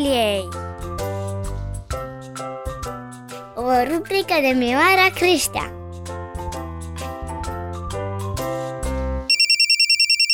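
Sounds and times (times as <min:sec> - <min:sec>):
music: 0:00.0 - 0:09.3
speech: 0:03.7 - 0:05.8
telephone ringing with an electronic trill: 0:09.3 - 0:10.3.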